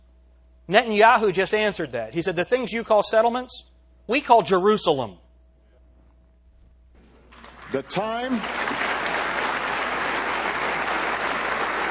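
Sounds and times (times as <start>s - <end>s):
speech: 0.7s - 5.2s, 7.7s - 8.7s
applause at the UN assembly: 7.3s - 11.9s.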